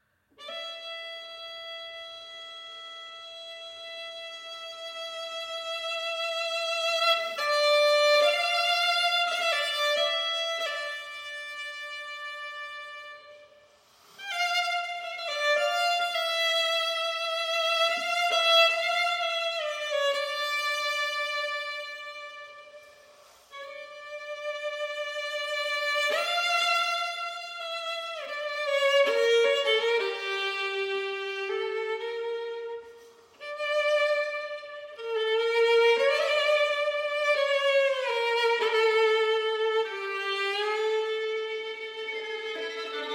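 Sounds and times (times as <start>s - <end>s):
two violins: 0.0s - 43.1s.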